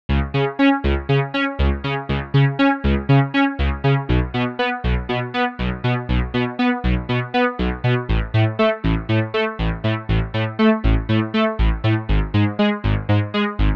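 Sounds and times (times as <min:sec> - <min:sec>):
FM synth sequence: 0:00.1 - 0:13.7.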